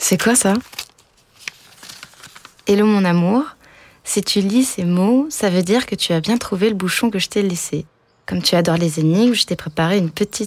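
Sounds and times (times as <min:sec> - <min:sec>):
speech: 0:00.1 - 0:00.8, 0:02.7 - 0:10.4
paper envelope being torn open: 0:00.3 - 0:02.7.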